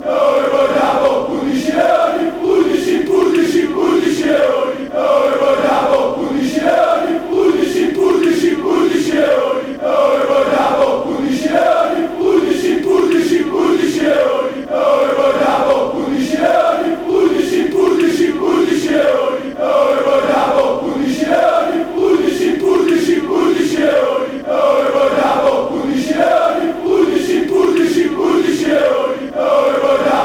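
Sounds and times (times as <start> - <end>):
fans chanting: 0.0 - 30.2.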